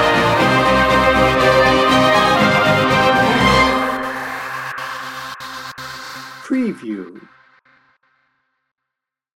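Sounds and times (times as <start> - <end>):
warrior march without drums: 0.0 - 4.8, 6.4 - 7.3.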